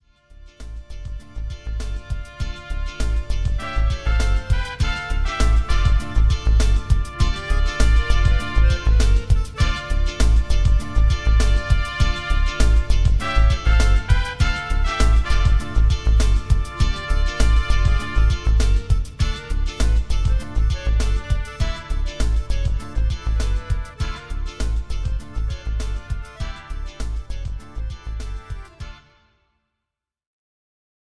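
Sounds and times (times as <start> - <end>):
phased funk music: 0.2 - 29.1.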